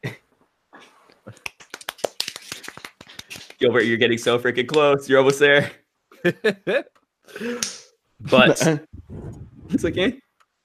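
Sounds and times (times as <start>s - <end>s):
sharp hand claps: 1.3s - 3.6s, 7.6s - 7.9s
speech: 3.6s - 9.2s, 9.8s - 10.2s
brief noise: 8.2s - 10.2s.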